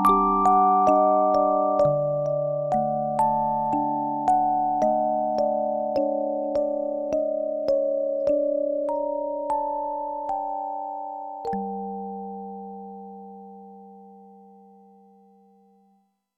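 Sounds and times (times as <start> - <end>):
music box: 0.0 - 12.8.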